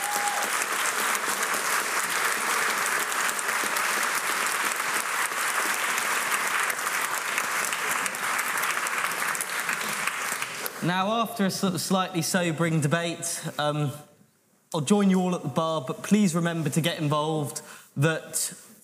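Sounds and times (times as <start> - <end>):
audience round of applause: 0.0 - 10.8
speech: 10.8 - 14.1, 14.7 - 18.6.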